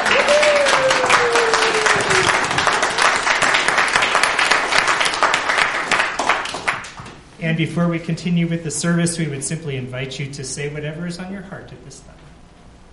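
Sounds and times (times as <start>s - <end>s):
church audience applause: 0.0s - 7.0s
speech: 7.6s - 12.3s.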